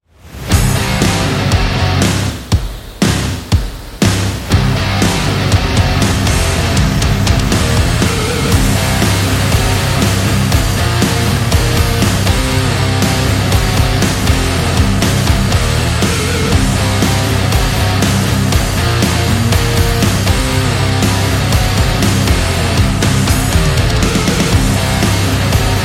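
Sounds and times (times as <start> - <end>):
heavy metal music: 0.2 - 25.8.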